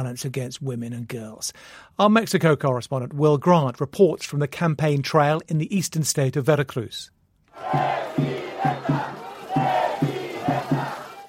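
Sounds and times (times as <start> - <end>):
speech: 0.0 - 9.1
rally crowd chanting: 7.6 - 11.2.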